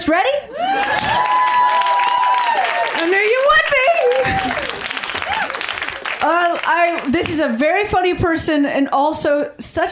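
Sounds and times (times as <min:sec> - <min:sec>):
speech: 0:00.1 - 0:00.9, 0:06.8 - 0:09.9
audience applause for a comedian: 0:00.6 - 0:07.6.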